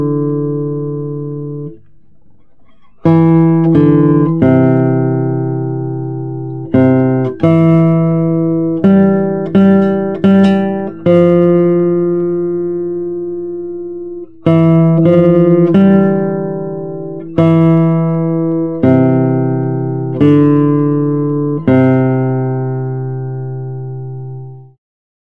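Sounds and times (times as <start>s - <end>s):
guitar melody: 0.0s - 24.8s.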